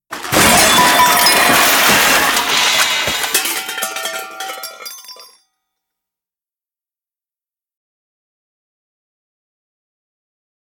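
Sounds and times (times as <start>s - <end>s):
crash: 0.1s - 5.4s.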